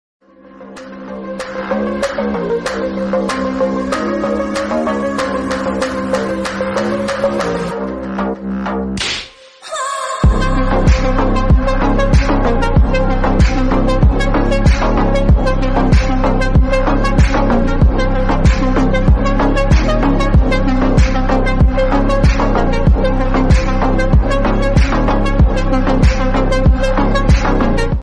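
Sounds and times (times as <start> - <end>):
instrumental background music ringtone: 0.2 - 28.0.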